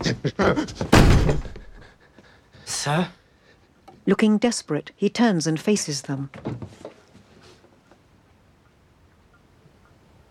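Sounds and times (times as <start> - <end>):
speech: 0.2 - 1.0, 2.8 - 3.2, 4.0 - 6.9
front door pushed shut: 0.9 - 1.8
soft knocks and shuffles: 6.3 - 7.9.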